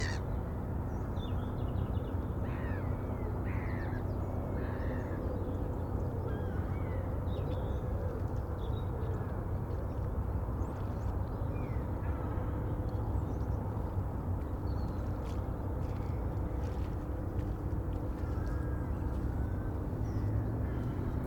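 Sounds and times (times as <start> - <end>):
calm coastal waterfront morning ambience: 0.0 - 21.2.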